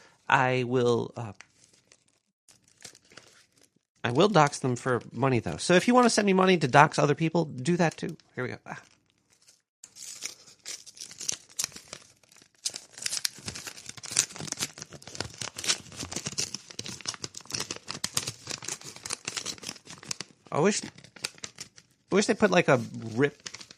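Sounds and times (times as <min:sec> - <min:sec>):
speech: 0:00.3 - 0:01.5, 0:04.0 - 0:08.9, 0:20.6 - 0:21.0, 0:22.1 - 0:23.5
envelope of mail being torn open: 0:01.5 - 0:03.7, 0:08.8 - 0:23.7.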